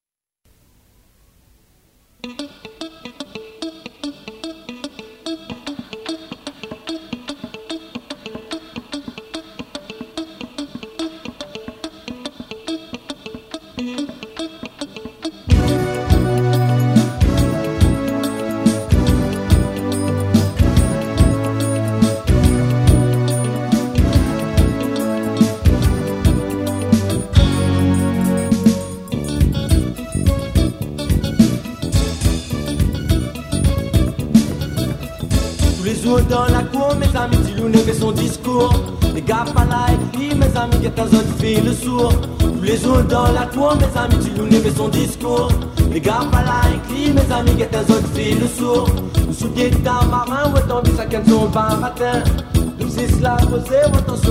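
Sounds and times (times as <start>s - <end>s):
sega reggae music: 2.2s - 54.2s.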